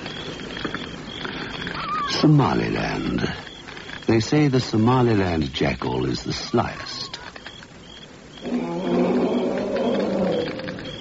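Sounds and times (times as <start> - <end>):
speech: 2.2 - 3.5, 4.1 - 6.9
lion roaring: 8.4 - 10.9.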